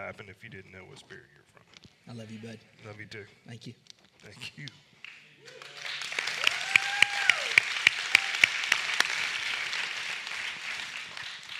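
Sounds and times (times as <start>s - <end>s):
hiss: 0.0s - 11.5s
speech: 0.1s - 5.7s
person clapping: 5.0s - 11.5s.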